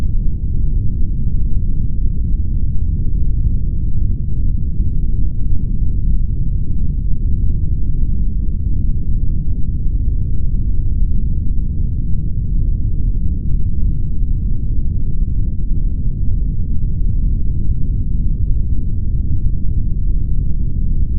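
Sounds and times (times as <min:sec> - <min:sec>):
deep low rumble of earthquake seismic activity: 0:00.0 - 0:21.1.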